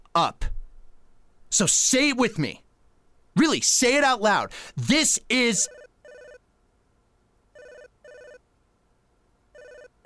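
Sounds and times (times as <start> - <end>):
speech: 0.2 - 0.4, 1.5 - 2.6, 3.4 - 5.8
cell phone ringing with an incoming call: 5.6 - 6.4, 7.6 - 8.4, 9.5 - 10.0.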